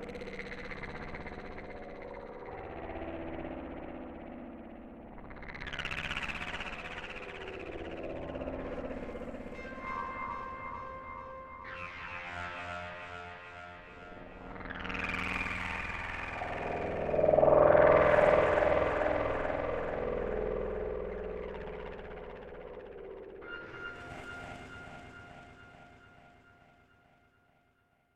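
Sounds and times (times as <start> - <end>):
glowing atmospheric background music: 7.7 - 26.6.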